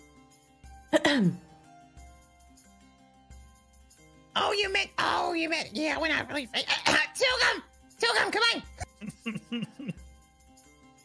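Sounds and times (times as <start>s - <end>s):
woman politely clearing her throat: 1.0s - 1.5s, 9.0s - 10.0s
speech: 1.1s - 1.5s, 4.6s - 9.7s.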